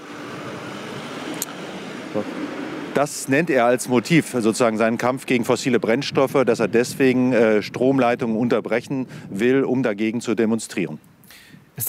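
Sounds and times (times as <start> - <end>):
police car driving past on a street: 0.0 - 5.4
speech: 2.1 - 11.2.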